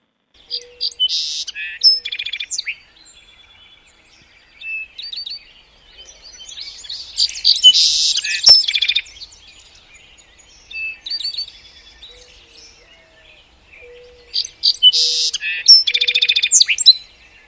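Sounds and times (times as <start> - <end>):
song sparrow singing: 0.4 - 17.4.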